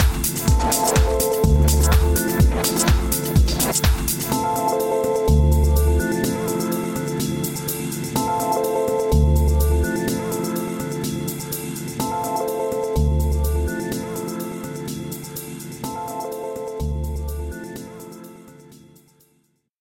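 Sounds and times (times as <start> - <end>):
disco music: 0.0 - 18.9.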